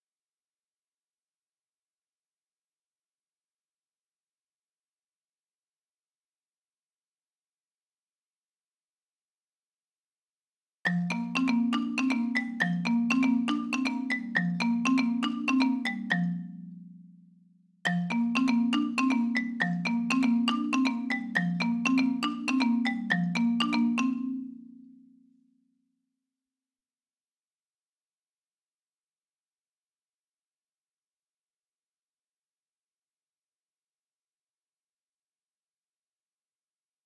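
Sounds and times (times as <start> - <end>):
marimba: 10.9 - 25.2.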